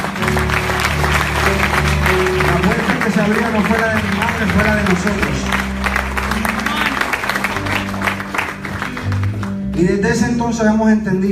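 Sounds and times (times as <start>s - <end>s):
audience applause: 0.0s - 9.9s
speech: 3.3s - 5.6s, 9.8s - 11.3s.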